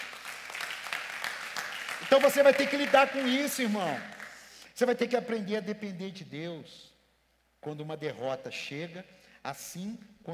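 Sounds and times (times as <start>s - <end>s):
audience applause: 0.0s - 4.4s
speech: 2.1s - 4.2s, 4.8s - 6.9s, 7.6s - 10.3s.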